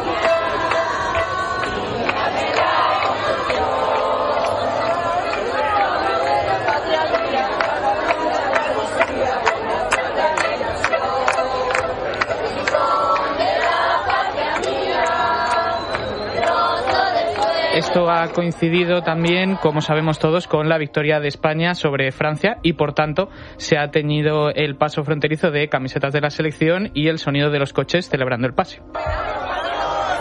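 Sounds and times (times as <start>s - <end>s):
crowd chanting an anthem at a border fence: 0.0s - 20.8s, 28.9s - 30.1s
speech: 18.0s - 29.2s.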